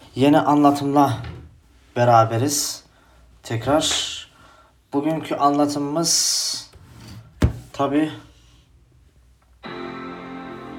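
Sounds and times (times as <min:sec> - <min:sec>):
speech: 0:00.2 - 0:01.3, 0:02.0 - 0:02.8, 0:03.4 - 0:04.2, 0:04.9 - 0:06.7, 0:07.8 - 0:08.3
MacBook laptop lid opening: 0:07.4 - 0:07.7.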